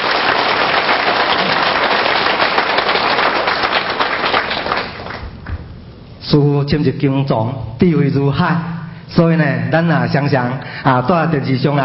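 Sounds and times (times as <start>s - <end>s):
audience applause: 0.0s - 5.4s
speech: 6.3s - 11.8s.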